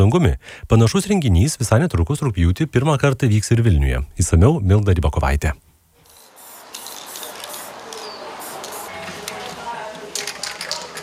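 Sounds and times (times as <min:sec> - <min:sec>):
speech: 0:00.0 - 0:05.7
aerosol spray paint can spraying graffiti onto a wall: 0:06.0 - 0:10.4.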